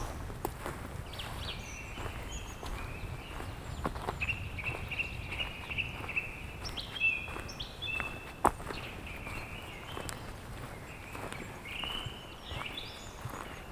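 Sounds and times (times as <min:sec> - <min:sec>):
soft crunching footsteps: 0:00.0 - 0:13.7
birds chirping in a lowland forest in the Pyrenees: 0:01.0 - 0:13.7.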